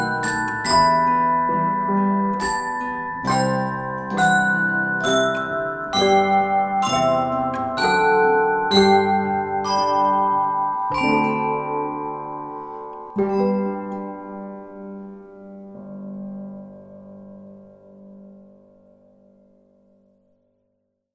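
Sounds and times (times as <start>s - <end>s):
bells rung by campanari for Noel: 0.0s - 15.0s.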